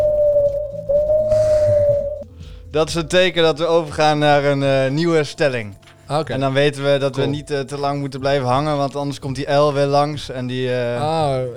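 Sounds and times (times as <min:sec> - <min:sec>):
owl hoot sound effect: 0:00.0 - 0:02.7
speech: 0:02.8 - 0:11.5.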